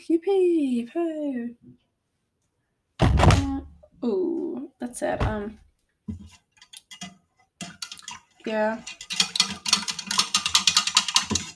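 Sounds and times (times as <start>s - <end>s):
speech: 0.0s - 1.8s, 4.0s - 6.4s, 8.4s - 9.0s
stirring in a container: 6.0s - 11.5s.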